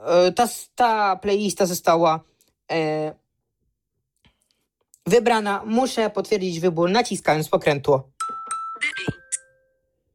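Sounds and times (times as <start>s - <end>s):
speech: 0.0s - 3.2s, 5.0s - 8.1s
phone health app notification chime: 8.2s - 9.9s.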